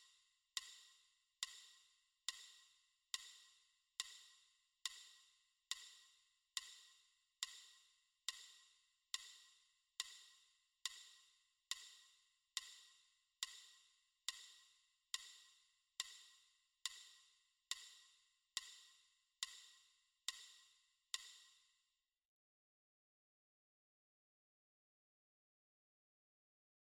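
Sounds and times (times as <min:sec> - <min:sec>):
metronome ticking: 0:00.5 - 0:21.5.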